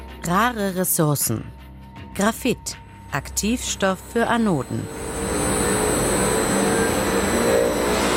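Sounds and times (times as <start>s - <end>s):
speech: 0.3s - 5.1s
recycling plant high-pitched whines: 3.4s - 8.1s
recycling plant machinery starting up: 3.9s - 8.1s.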